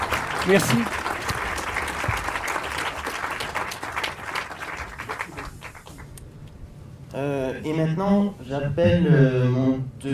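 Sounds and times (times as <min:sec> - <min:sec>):
audience applause: 0:00.0 - 0:06.1
speech: 0:00.4 - 0:01.0, 0:07.2 - 0:10.1.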